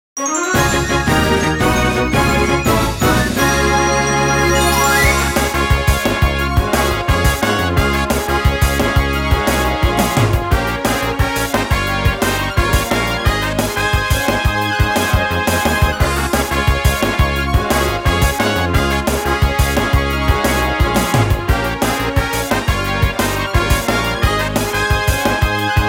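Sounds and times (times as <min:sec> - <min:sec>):
battle victory music: 0:00.2 - 0:25.8.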